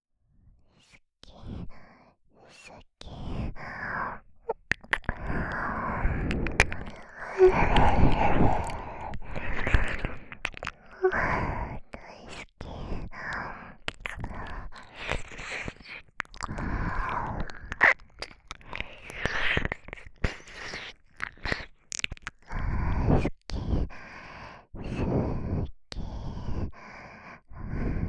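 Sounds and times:
intimate whispering: 1.3 - 28.0
ear licking: 3.0 - 24.3.

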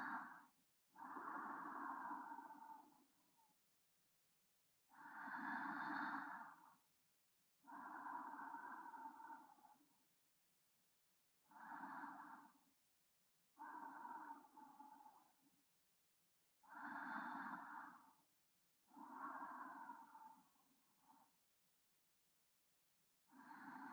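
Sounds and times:
breathing of a person lying alongside, centred: 0.0 - 3.2, 4.9 - 6.8, 7.6 - 9.8, 11.5 - 12.7, 13.6 - 15.4, 16.6 - 18.3, 18.9 - 21.4, 23.2 - 23.9.

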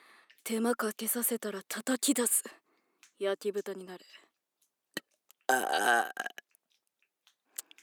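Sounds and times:
speech: 0.5 - 2.6, 3.2 - 4.2, 5.5 - 6.4
burp: 5.5 - 6.4.

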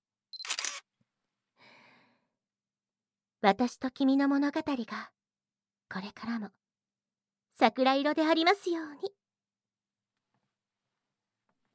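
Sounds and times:
camera shutter firing as a photo is taken: 0.4 - 0.9
speech: 3.4 - 5.2, 5.9 - 6.6, 7.6 - 9.2.

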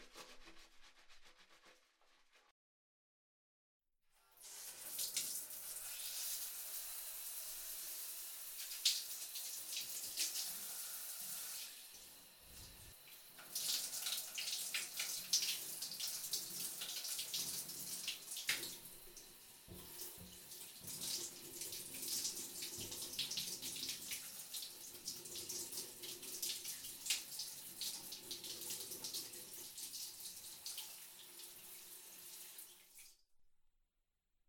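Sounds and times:
rubbing and splashing in a bath: 0.0 - 2.5
tap water running to rinse someone off in a bath: 4.2 - 33.2.

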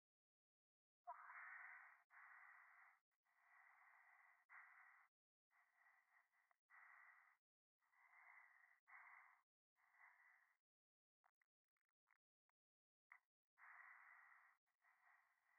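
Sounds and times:
breathing close to right ear on a phone: 1.2 - 10.6, 13.6 - 15.5.

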